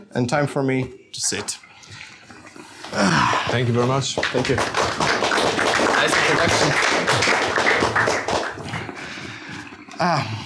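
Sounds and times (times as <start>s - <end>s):
speech: 0.1s - 1.7s, 2.9s - 4.9s, 6.0s - 8.2s, 10.0s - 10.4s
audience clapping: 2.8s - 9.3s.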